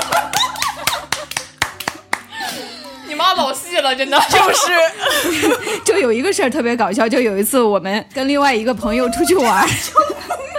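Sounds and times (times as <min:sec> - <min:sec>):
laughter: 0:00.0 - 0:01.6, 0:04.2 - 0:06.0, 0:09.0 - 0:10.5
applause: 0:00.0 - 0:02.3
speech: 0:03.3 - 0:10.5.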